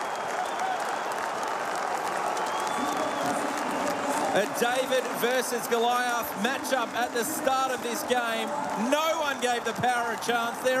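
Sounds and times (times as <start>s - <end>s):
football fans applauding and cheering at halftime: 0.0s - 10.7s
whistles: 2.4s - 3.4s
speech: 4.4s - 10.7s.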